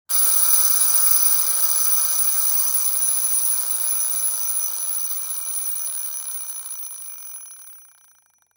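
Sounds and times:
mechanical alarm clock: 0.1s - 8.5s.

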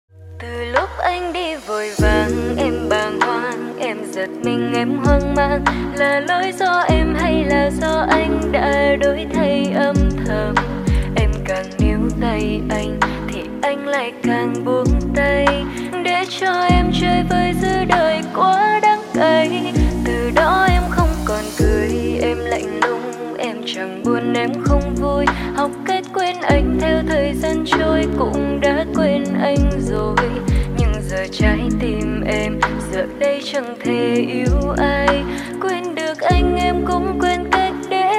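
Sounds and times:
lofi cover: 0.2s - 38.0s.

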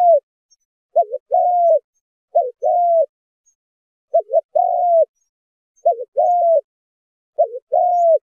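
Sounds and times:
spotted dove cooing: 0.0s - 0.2s, 0.9s - 3.1s, 4.1s - 6.7s, 7.4s - 8.3s.

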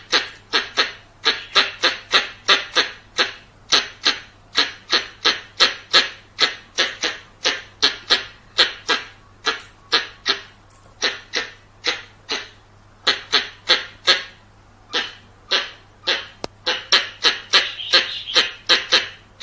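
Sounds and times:
squirrel chattering: 0.0s - 19.4s.

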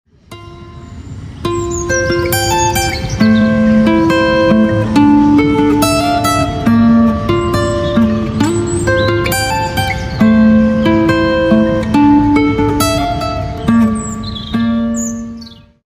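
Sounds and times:
instrumental guitar: 0.2s - 15.8s.

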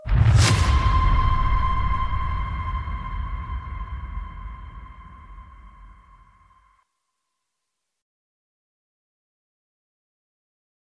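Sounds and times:
cinematic tension trailer music: 0.0s - 6.6s.

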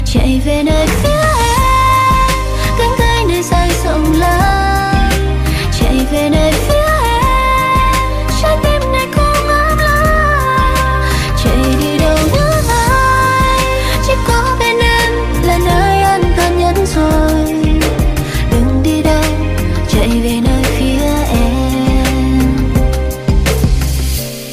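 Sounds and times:
cover ringtone music: 0.6s - 24.5s.

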